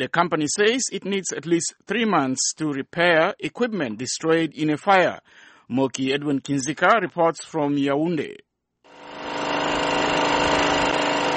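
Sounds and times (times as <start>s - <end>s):
speech: 0.0s - 8.5s
standby generator running loudly in Yaoundé, Cameroon: 8.9s - 11.3s.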